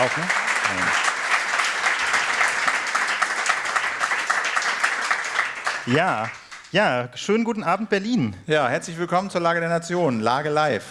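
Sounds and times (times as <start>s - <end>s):
speech: 0.0s - 1.1s, 5.8s - 10.9s
audience applause: 0.0s - 6.9s.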